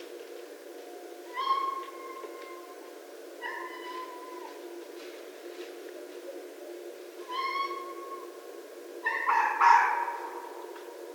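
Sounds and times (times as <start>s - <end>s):
red fox calling: 1.3s - 4.7s, 7.2s - 8.4s, 9.0s - 10.8s.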